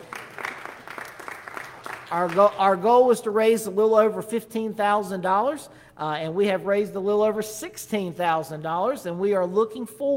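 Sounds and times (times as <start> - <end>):
church congregation applauding a landscaping fundraising goal: 0.0 - 3.1
speech: 2.1 - 10.1.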